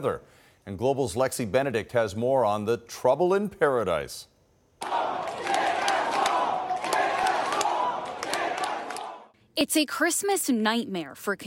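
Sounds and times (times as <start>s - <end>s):
speech: 0.0s - 5.0s, 9.6s - 11.4s
claps or shouts: 4.8s - 9.3s
large crowd of stranded travellers chanting: 4.8s - 9.3s.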